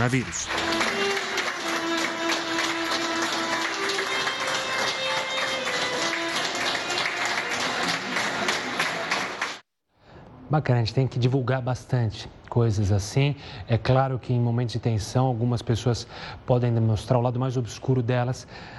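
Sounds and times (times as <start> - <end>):
speech: 0.0 - 0.7, 10.5 - 18.7
group applauding a recovered coronavirus patient: 0.0 - 9.6.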